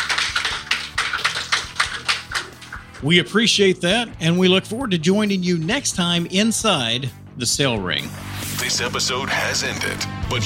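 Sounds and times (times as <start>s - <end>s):
studio audience applause: 0.0s - 3.0s
speech: 3.0s - 10.4s.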